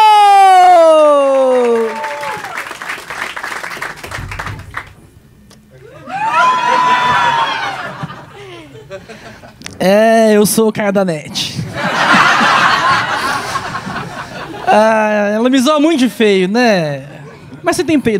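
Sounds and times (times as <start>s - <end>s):
audience cheering and whooping: 0.0s - 5.0s, 5.8s - 8.6s
audience clapping: 1.0s - 5.0s
laughter: 5.8s - 9.6s, 11.7s - 14.8s
speech: 10.5s - 11.4s, 14.7s - 18.1s.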